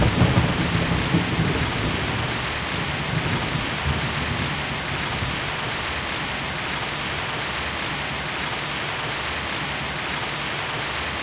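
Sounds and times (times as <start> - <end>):
rain ambience: 0.0 - 11.2.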